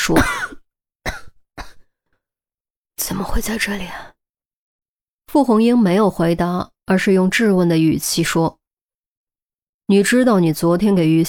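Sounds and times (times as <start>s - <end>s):
speech: 0.0s - 0.4s, 3.2s - 4.1s, 5.3s - 8.6s, 9.9s - 11.2s
hoarse coughing: 0.0s - 1.9s.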